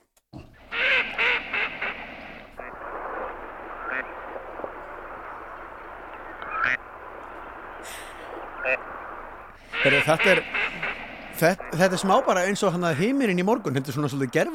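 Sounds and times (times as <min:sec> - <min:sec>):
noise: 0:00.0 - 0:14.5
gadwall duck croaking calls: 0:00.4 - 0:04.4, 0:06.2 - 0:06.9, 0:07.8 - 0:08.9, 0:09.6 - 0:12.5
speech: 0:09.8 - 0:10.6, 0:11.4 - 0:14.5.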